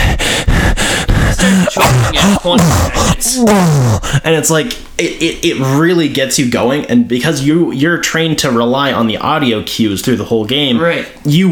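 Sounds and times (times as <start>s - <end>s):
person imitating labored gasping breathing of low-air character: 0.0s - 4.3s
speech: 1.4s - 11.5s.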